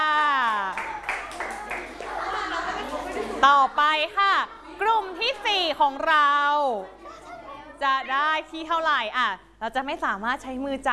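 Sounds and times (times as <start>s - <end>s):
class clapping for a group: 0.1s - 2.8s
speech: 3.4s - 7.0s, 7.8s - 10.9s.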